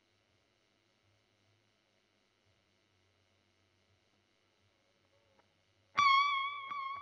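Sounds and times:
guitar recorded with Royer microphone: 0:05.0 - 0:07.0.

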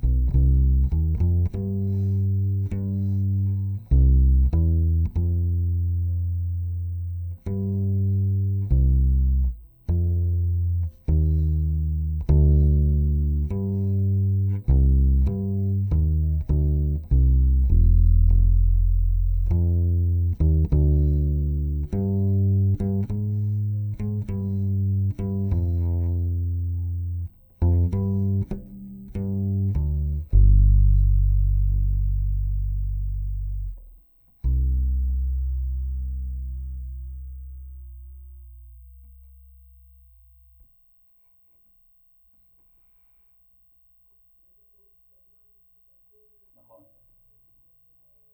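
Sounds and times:
bass guitar in C recorded direct input: 0:00.0 - 0:40.7.

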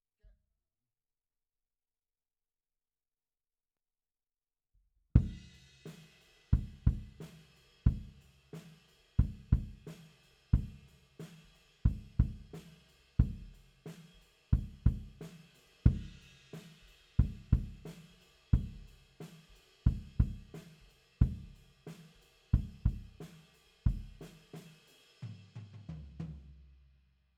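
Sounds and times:
bass drum: 0:05.2 - 0:05.6, 0:06.6 - 0:07.2, 0:07.9 - 0:08.2, 0:09.2 - 0:09.9, 0:10.6 - 0:10.9, 0:11.9 - 0:12.6, 0:13.2 - 0:13.6, 0:14.6 - 0:15.2, 0:15.9 - 0:16.2, 0:17.2 - 0:18.0, 0:18.6 - 0:18.9, 0:19.9 - 0:20.6, 0:21.2 - 0:21.6, 0:22.6 - 0:23.3, 0:23.9 - 0:24.3.

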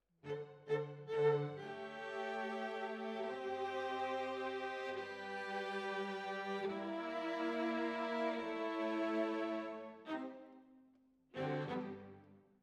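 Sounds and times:
violas: 0:00.7 - 0:10.4.

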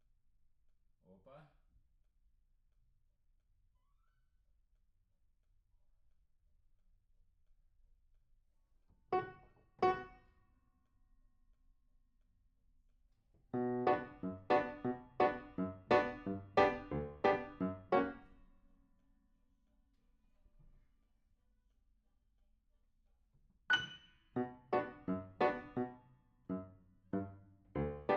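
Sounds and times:
piano: 0:09.2 - 0:10.2, 0:13.5 - 0:18.4, 0:23.7 - 0:28.1.

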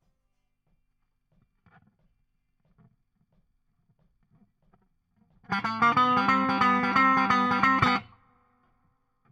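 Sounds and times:
guitar solo: 0:05.5 - 0:08.1.

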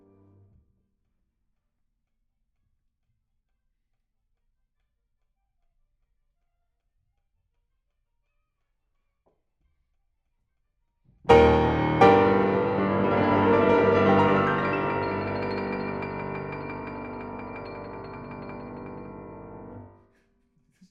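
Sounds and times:
piano: 0:11.3 - 0:20.0.

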